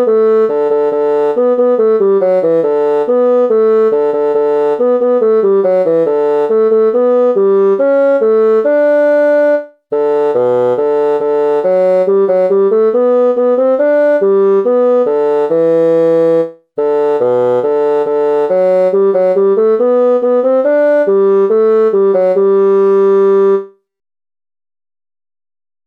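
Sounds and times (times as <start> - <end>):
bassoon: 0.0 - 23.8.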